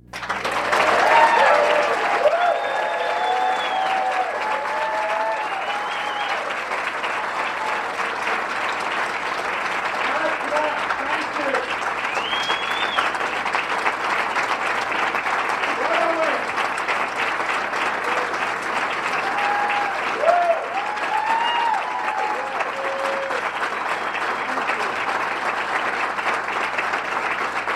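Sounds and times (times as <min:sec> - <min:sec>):
audience cheering and applause: 0:00.0 - 0:27.7.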